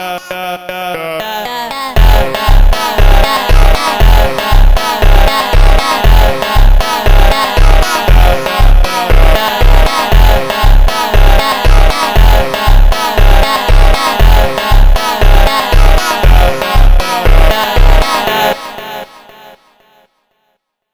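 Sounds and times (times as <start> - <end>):
slowed funk instrumental: 2.0 - 18.6.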